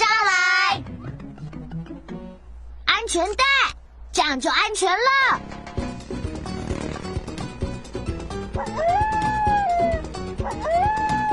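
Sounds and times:
busy music: 0:00.0 - 0:02.9, 0:05.1 - 0:11.3
speech: 0:03.1 - 0:05.6
coyote howling: 0:08.5 - 0:11.3.

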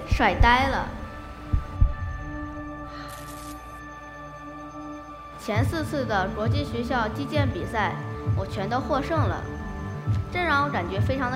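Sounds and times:
heartbeat sound effect: 0:00.1 - 0:02.8, 0:06.5 - 0:11.3
speech: 0:00.2 - 0:01.0, 0:05.4 - 0:11.3.

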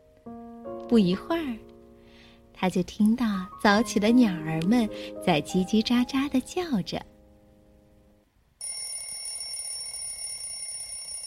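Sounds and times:
speech: 0:00.2 - 0:01.7, 0:02.6 - 0:07.1
alarm clock ringing: 0:08.6 - 0:11.2.

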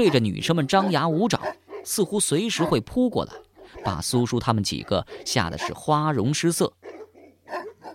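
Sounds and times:
large dog barking: 0:00.0 - 0:06.1, 0:06.8 - 0:07.9
speech: 0:00.0 - 0:06.8.

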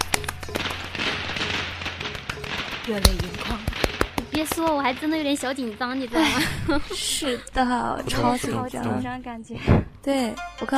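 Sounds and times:
hand clapping: 0:00.0 - 0:06.4
speech: 0:02.9 - 0:10.7
laughter: 0:06.0 - 0:09.1.

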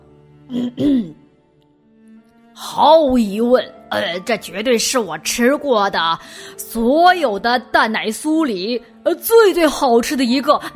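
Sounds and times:
speech: 0:00.5 - 0:01.2, 0:02.8 - 0:10.7
person clearing throat for a tiger character: 0:00.5 - 0:01.3.

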